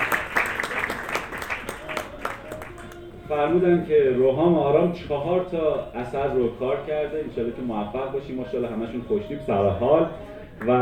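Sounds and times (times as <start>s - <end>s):
audience applause: 0.0s - 2.9s
speech: 3.3s - 10.8s.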